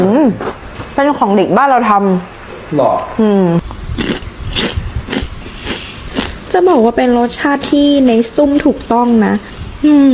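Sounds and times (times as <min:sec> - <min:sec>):
speech: 0:00.0 - 0:03.7, 0:06.6 - 0:10.1
chewing a crunchy milk-flavoured snack: 0:03.6 - 0:06.4.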